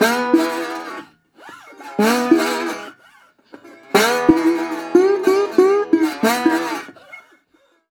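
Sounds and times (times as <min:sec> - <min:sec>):
blues guitar at 120 BPM: 0:00.0 - 0:01.0, 0:01.7 - 0:07.0.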